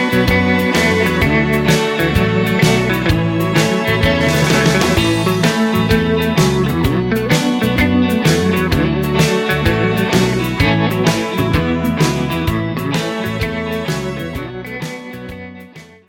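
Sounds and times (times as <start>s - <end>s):
backing track music without backing vocals: 0.0s - 16.0s.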